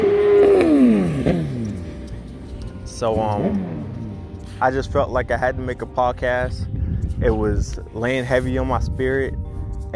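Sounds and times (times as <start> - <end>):
motorcycle passing by: 0.0 - 2.4, 3.2 - 4.4
speech: 3.0 - 4.0, 4.6 - 9.9.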